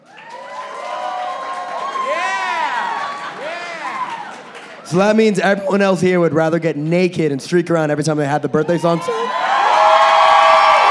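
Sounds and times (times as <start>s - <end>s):
audience applause: 0.0s - 5.7s, 9.2s - 10.8s
audience cheering: 0.0s - 6.1s, 8.6s - 10.8s
speech: 4.9s - 9.4s.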